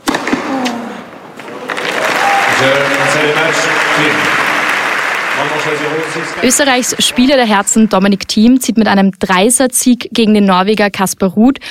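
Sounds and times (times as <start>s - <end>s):
crowd cheering and applause: 1.3s - 8.4s
speech: 2.6s - 4.4s, 5.4s - 11.6s.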